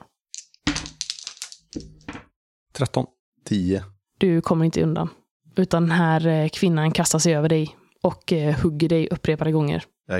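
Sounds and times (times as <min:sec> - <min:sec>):
two dice rattling across a hard surface: 0:00.4 - 0:02.3
speech: 0:02.8 - 0:10.1.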